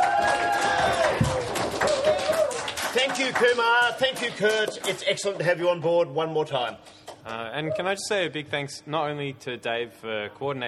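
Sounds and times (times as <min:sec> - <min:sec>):
crowd applause: 0:00.0 - 0:05.2
speech: 0:03.2 - 0:10.6.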